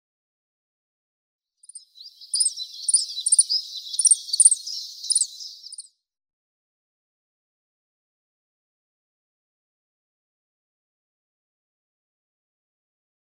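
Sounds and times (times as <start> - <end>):
common chiffchaff singing: 1.7 - 5.9.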